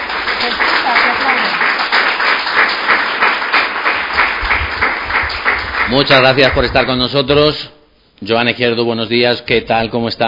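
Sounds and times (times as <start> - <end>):
studio audience applause: 0.0 - 7.1
speech: 5.9 - 10.2.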